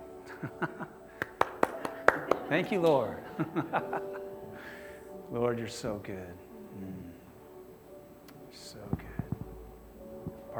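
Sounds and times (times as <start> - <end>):
laughter: 0.3 - 4.4
speech: 0.4 - 0.8, 2.5 - 4.2, 5.3 - 6.9
hands clapping: 1.1 - 3.3.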